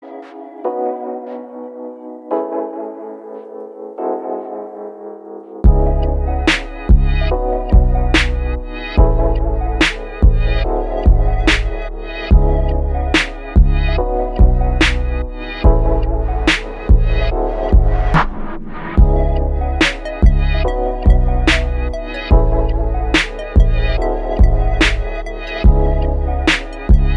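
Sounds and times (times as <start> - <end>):
lo-fi beats: 0.1 - 27.1.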